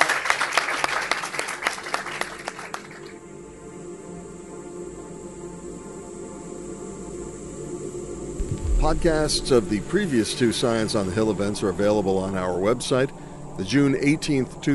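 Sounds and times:
audience applause: 0.0 - 3.2
speech: 8.8 - 14.7.

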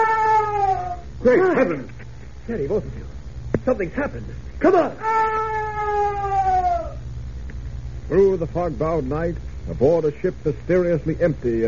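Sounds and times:
strange terrifying shrill siren-like scream: 0.0 - 1.1, 4.7 - 7.0
speech: 1.2 - 5.4, 8.1 - 11.6.

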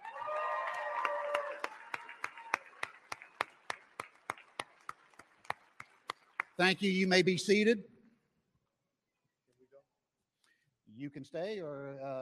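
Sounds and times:
audience applause: 0.0 - 7.0
speech: 6.6 - 7.9, 11.2 - 12.1.

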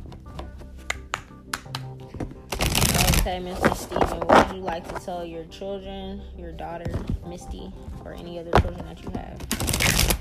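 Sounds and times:
deck of cards shuffling: 0.4 - 5.2, 8.6 - 10.1
speech: 3.2 - 9.8.

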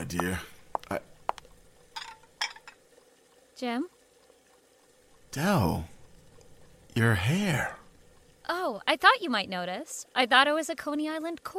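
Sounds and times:
speech: 0.1 - 1.1, 3.6 - 4.0, 5.3 - 5.9, 7.0 - 7.8, 8.5 - 11.5
kitchen clatter of pots, pans and utensils while chops and string beans cook: 2.0 - 2.8.

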